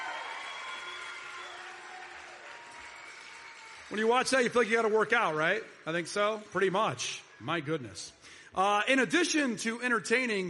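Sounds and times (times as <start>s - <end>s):
crowd applause and cheering: 0.0s - 8.0s
speech: 3.9s - 10.4s.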